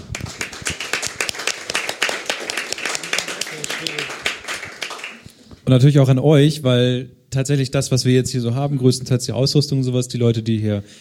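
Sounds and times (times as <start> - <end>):
audience applause: 0.0 - 5.3
speech: 5.7 - 10.9.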